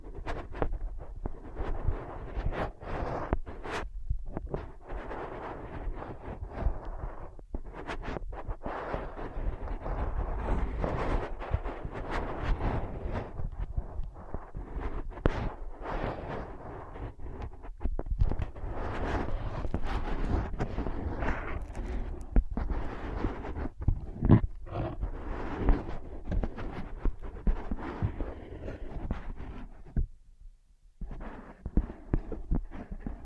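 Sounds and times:
tapping, scratching and tracing on ear pads: 0.0 - 30.4, 31.0 - 33.2.

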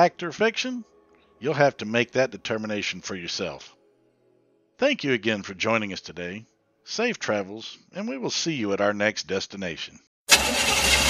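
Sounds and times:
speech: 0.0 - 3.8, 4.8 - 10.7
car engine struggling during a breakdown: 10.3 - 11.0.

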